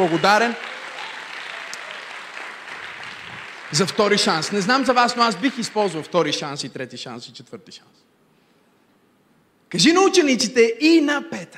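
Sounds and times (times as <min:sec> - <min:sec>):
speech: 0:00.0 - 0:00.7, 0:03.7 - 0:08.2, 0:09.7 - 0:11.5
audience applauding: 0:00.0 - 0:06.3.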